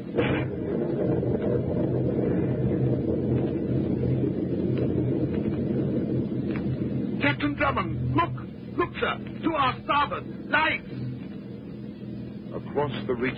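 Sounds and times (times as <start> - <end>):
storm wind at sea: 0.0 - 13.3
speech: 7.6 - 11.1, 12.6 - 13.3.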